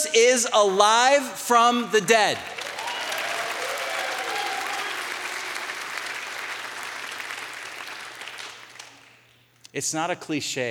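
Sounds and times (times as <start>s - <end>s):
speech: 0.1s - 2.6s, 9.8s - 10.6s
church audience applause: 2.4s - 9.2s.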